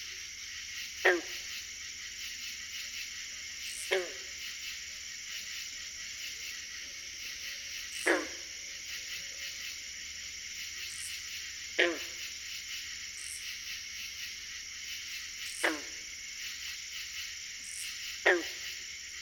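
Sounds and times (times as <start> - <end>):
insect chorus: 0.0 - 19.2
green frogs calling: 0.8 - 1.8, 3.7 - 5.6, 7.2 - 9.9, 10.8 - 14.4, 15.4 - 16.1, 17.7 - 19.0.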